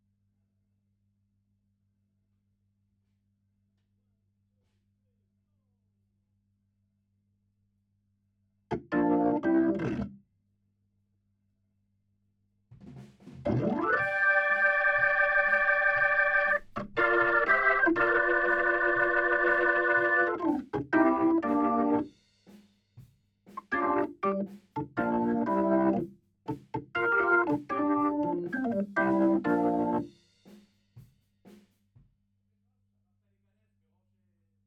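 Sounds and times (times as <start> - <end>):
Hammond organ: 8.9 - 10.0, 13.5 - 22.0, 23.6 - 26.1, 27.0 - 30.0.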